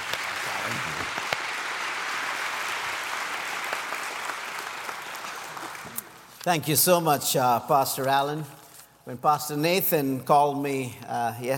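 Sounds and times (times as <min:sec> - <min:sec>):
church congregation applause welcoming a guest speaker: 0:00.0 - 0:06.4
speech: 0:06.4 - 0:11.5.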